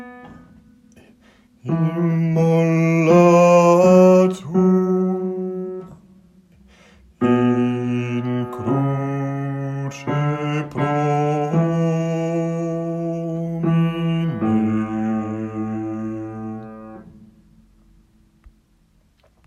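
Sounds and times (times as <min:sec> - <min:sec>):
bass voice singing: 0:01.7 - 0:06.0, 0:07.2 - 0:17.1.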